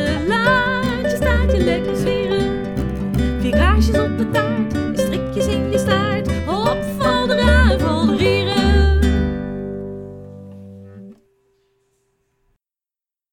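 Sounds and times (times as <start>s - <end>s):
person singing: 0.0s - 9.6s.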